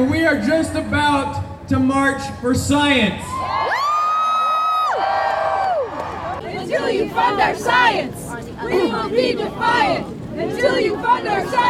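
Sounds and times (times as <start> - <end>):
speech: 0.0 - 3.7, 6.9 - 11.6
large outdoor crowd cheering and applauding: 3.3 - 6.4.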